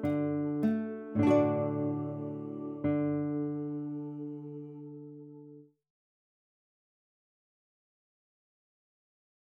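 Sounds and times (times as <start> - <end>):
guitar playing a folk tune: 0.0 - 5.7.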